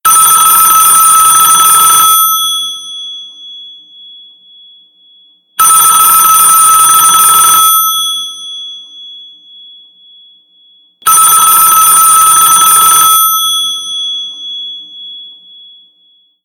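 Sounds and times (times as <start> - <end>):
ringtone: 0.1 - 16.4.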